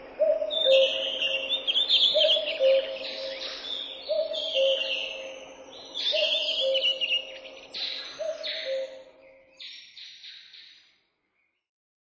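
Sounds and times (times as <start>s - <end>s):
forest birds: 0.0s - 11.7s.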